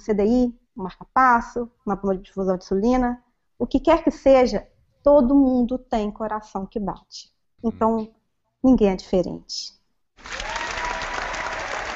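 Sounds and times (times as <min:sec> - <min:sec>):
speech: 0:00.0 - 0:10.4
audience applause: 0:10.2 - 0:11.9.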